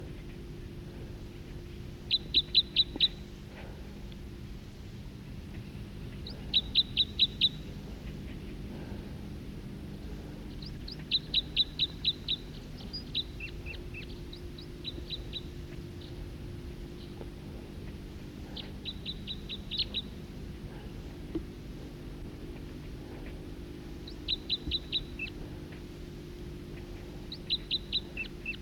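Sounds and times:
low steady hum: 0.0s - 28.6s
bird singing: 1.5s - 3.7s, 5.4s - 9.2s, 9.9s - 21.5s, 22.2s - 28.6s
faint scattered chirps: 1.7s - 3.8s, 5.5s - 9.3s, 10.0s - 28.6s.

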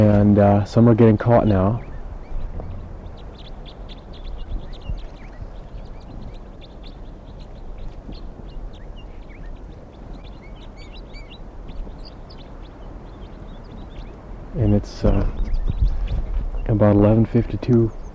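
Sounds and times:
speech: 0.0s - 1.9s, 14.6s - 15.4s, 16.7s - 18.0s
flock of crossbills calling: 0.0s - 18.1s.

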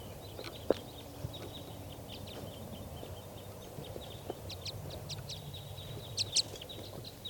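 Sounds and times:
wild bird flock chirps and calls in trees: 0.0s - 7.2s.

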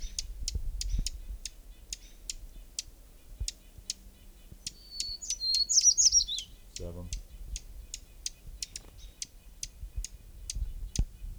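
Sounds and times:
hermit warbler singing: 0.0s - 11.3s.

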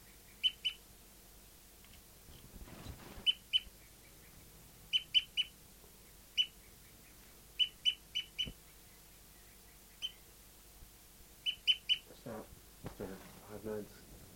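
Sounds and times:
bird tooping: 0.0s - 0.8s, 3.2s - 10.3s, 11.4s - 12.1s.

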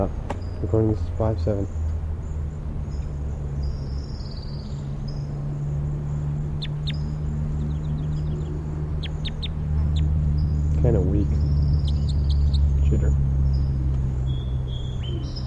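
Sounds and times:
speech: 0.0s - 1.8s
sparrow singing: 0.0s - 15.4s.

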